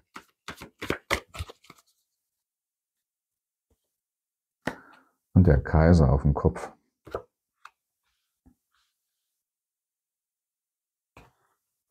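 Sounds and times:
deck of playing cards being shuffled: 0.0 - 2.0
speech: 5.4 - 6.8.

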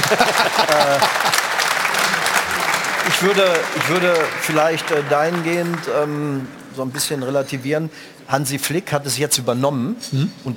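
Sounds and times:
laughter: 0.0 - 4.3
applause: 0.0 - 7.6
speech: 0.1 - 1.5, 3.2 - 10.5.

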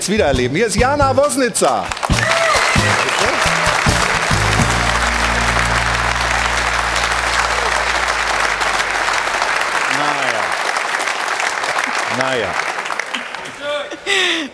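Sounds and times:
speech: 0.0 - 3.4, 12.2 - 12.7
audience applause: 1.9 - 13.9
low musical tone: 3.5 - 9.8.

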